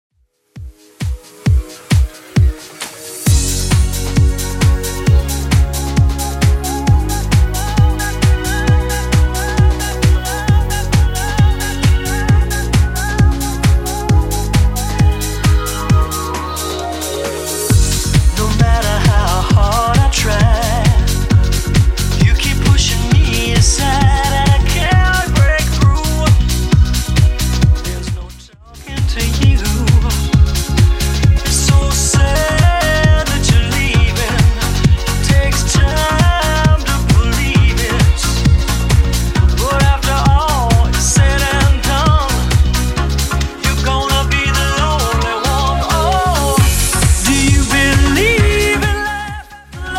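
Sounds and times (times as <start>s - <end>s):
90s DJ friendly dance music at 133 bpm: 0.5s - 49.9s.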